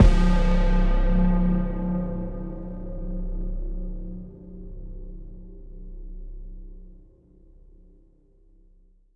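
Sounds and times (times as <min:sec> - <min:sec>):
dark hit sound in C: 0:00.0 - 0:07.0.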